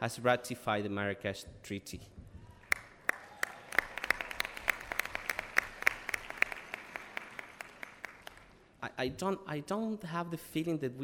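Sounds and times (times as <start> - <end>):
speech: 0.0 - 2.2, 9.0 - 11.0
audience applause at a convention: 2.5 - 8.6.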